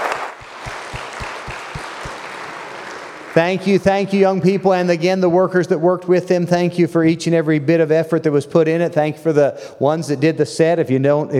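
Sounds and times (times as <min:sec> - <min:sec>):
audience applause: 0:00.0 - 0:03.6
low thumping pulse: 0:00.4 - 0:02.2
speech: 0:03.4 - 0:11.3.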